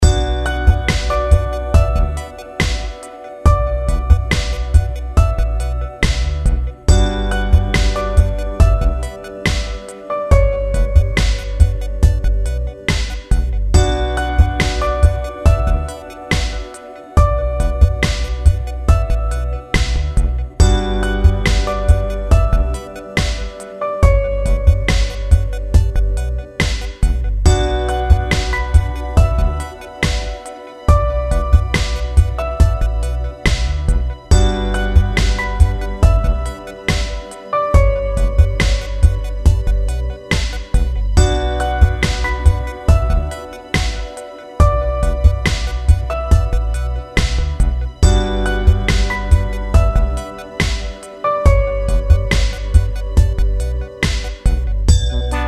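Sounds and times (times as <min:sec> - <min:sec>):
chill out music: 0:00.0 - 0:55.4.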